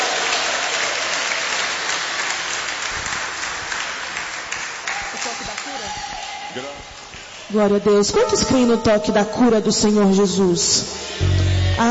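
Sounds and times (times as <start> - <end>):
audience applauding: 0.0 - 7.5
speech: 7.5 - 11.8.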